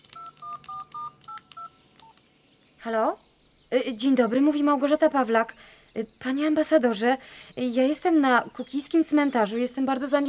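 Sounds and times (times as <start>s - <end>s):
telephone keypad tones dialing a call to the Polish embassy: 0.0s - 2.2s
faint clicks: 0.0s - 2.3s
speech: 2.8s - 10.2s.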